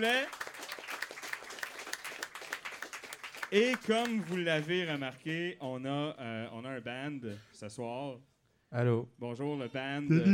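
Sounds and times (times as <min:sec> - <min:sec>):
speech: 0:00.0 - 0:00.5, 0:03.5 - 0:10.3
audience clapping for the event's technicians: 0:00.0 - 0:05.4.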